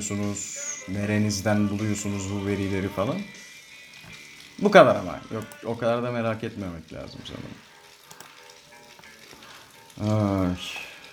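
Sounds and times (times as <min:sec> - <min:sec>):
speech: 0:00.0 - 0:03.4, 0:04.6 - 0:07.7, 0:10.0 - 0:10.9
rain falling: 0:03.8 - 0:11.1.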